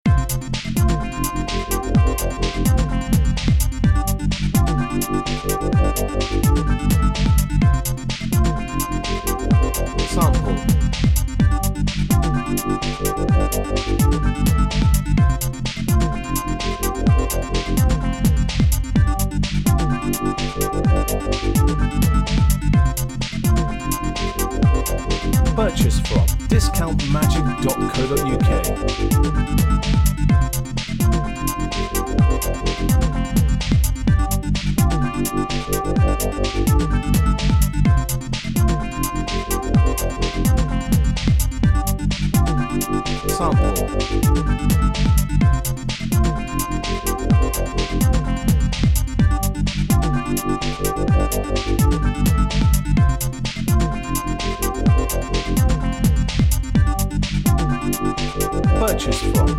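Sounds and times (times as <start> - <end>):
electro backing music: 0.1 - 48.7, 49.4 - 59.5.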